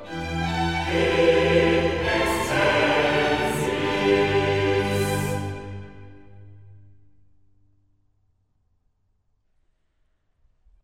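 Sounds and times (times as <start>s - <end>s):
sacred mass music in G: 0.0s - 7.3s.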